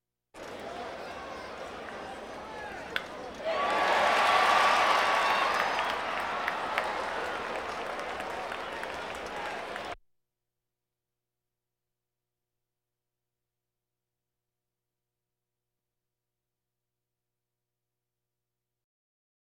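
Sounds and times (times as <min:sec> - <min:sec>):
crowds: 0:00.4 - 0:10.0.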